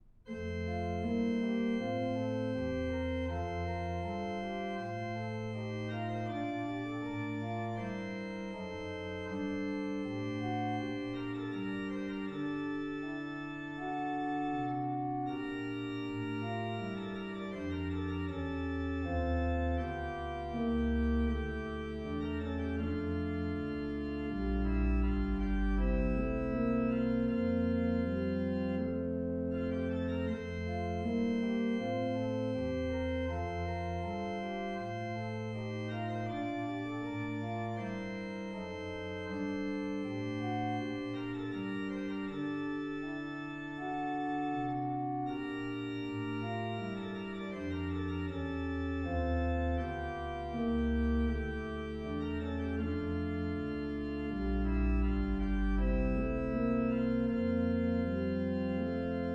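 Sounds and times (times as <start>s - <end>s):
organ chorale: 0.2s - 59.3s.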